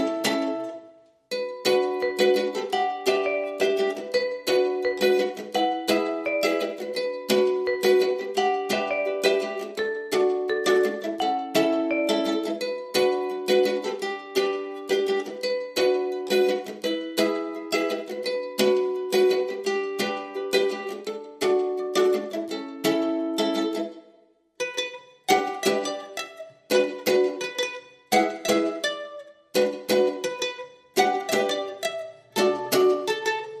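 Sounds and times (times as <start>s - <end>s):
mandolin: 0.0s - 33.5s
ukulele: 0.0s - 33.5s
vibraphone: 1.4s - 13.8s.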